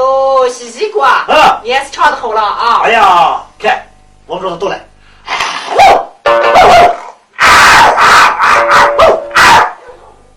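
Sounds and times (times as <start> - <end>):
speech: 0.6 - 4.9
dog barking: 5.7 - 10.3.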